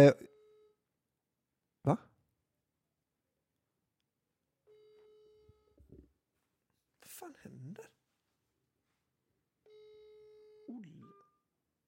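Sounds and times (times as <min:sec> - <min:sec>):
speech: 0:00.0 - 0:00.3, 0:01.8 - 0:02.1
phone dialing tone on speaker from accidental pocket call: 0:09.7 - 0:11.4.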